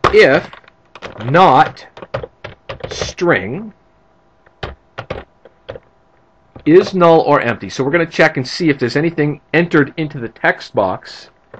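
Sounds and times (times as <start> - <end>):
typing C# code on a computer keyboard: 0.0 - 3.2, 4.5 - 5.9
speech: 0.1 - 0.6, 1.2 - 2.0, 2.9 - 3.8, 6.6 - 11.3.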